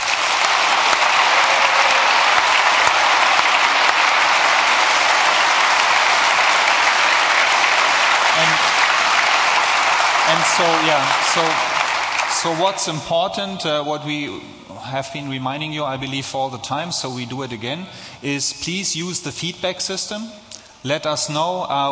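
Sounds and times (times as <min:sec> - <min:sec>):
audience applause for conference speakers: 0:00.0 - 0:13.1
audience whoops: 0:00.1 - 0:05.2
speech: 0:10.5 - 0:11.7, 0:12.4 - 0:21.9.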